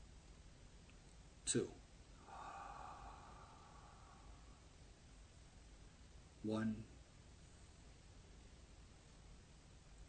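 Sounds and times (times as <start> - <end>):
speech: 1.5 - 1.8, 6.4 - 7.0
deep breath in during a guided breathing exercise: 2.2 - 4.9.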